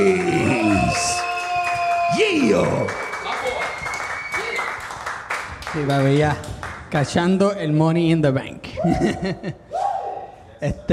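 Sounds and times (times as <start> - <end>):
audience applause: 0.0 - 6.8
speech: 5.8 - 9.6, 10.6 - 10.9.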